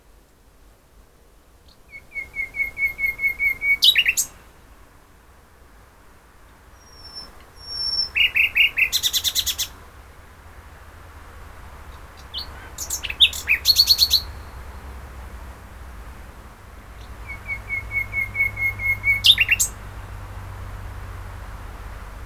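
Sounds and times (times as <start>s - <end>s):
common nightingale song: 1.6s - 4.9s, 5.8s - 22.2s.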